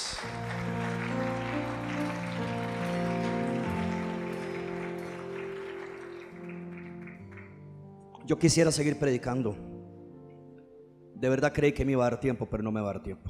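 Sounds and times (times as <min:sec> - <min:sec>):
audience applause: 0:00.0 - 0:07.6
sustained keyboard chords: 0:00.0 - 0:11.9
speech: 0:08.3 - 0:09.7, 0:11.2 - 0:13.2.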